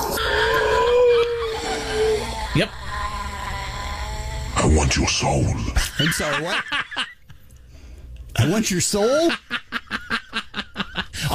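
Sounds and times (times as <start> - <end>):
cat wailing at night: 0.0 - 4.6
speech: 2.6 - 2.8, 4.7 - 7.1, 8.4 - 9.5
laughter: 5.8 - 7.3, 9.2 - 11.3.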